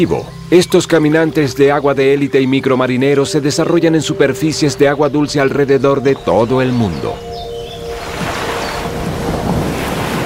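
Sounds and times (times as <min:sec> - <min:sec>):
speech: 0:00.0 - 0:07.5
rough sea surf at the shore: 0:06.8 - 0:10.2.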